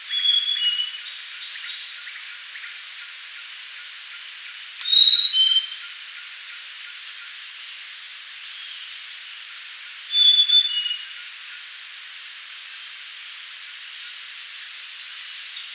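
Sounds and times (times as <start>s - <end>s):
insect hiss: 0.0s - 15.7s
grey-chested jungle flycatcher whistled song: 0.1s - 1.8s, 4.3s - 5.8s, 9.6s - 11.1s.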